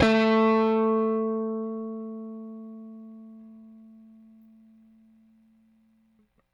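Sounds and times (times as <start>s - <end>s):
Rickenbacker bass guitar: 0.0s - 4.7s.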